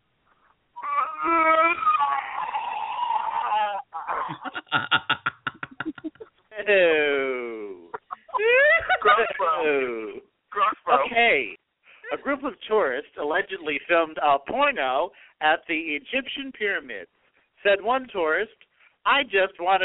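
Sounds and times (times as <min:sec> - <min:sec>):
voice imitating vomiting: 0:00.8 - 0:05.1
laughter: 0:04.1 - 0:06.3, 0:07.4 - 0:11.2
speech: 0:12.4 - 0:19.8.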